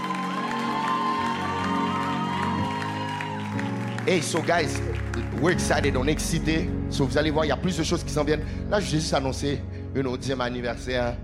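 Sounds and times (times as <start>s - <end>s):
audience applause: 0.0s - 6.1s
speech: 4.1s - 11.2s.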